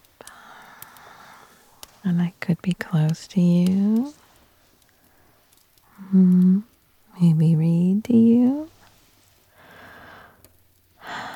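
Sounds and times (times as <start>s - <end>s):
person breathing slowly and softly: 0.2s - 1.8s, 9.5s - 10.4s, 11.0s - 11.3s
speech: 2.0s - 4.2s, 6.1s - 8.7s.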